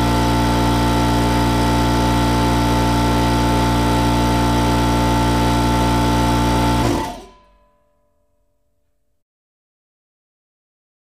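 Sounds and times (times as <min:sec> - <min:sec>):
air compressor motor chugging: 0:00.0 - 0:07.4.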